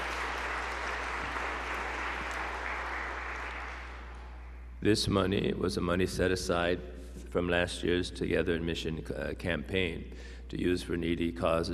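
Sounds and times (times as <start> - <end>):
audience applause: 0.0 - 4.5
speech: 4.8 - 11.7.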